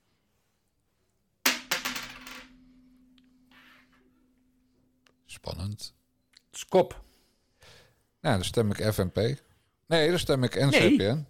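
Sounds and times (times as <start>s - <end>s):
tossed coin bouncing on hard surface: 1.4s - 3.0s
speech: 5.4s - 6.0s, 6.6s - 7.0s, 8.2s - 11.2s.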